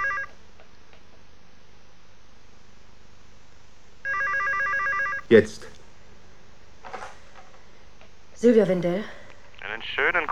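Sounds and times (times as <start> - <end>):
telephone ringing: 0.0 - 0.4, 4.0 - 5.3
speech: 5.3 - 5.7, 8.4 - 9.2, 9.8 - 10.2.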